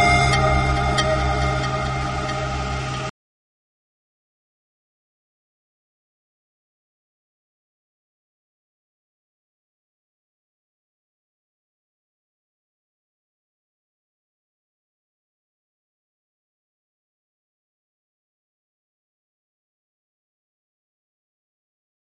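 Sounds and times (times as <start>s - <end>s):
pan flute: 0.0s - 3.1s.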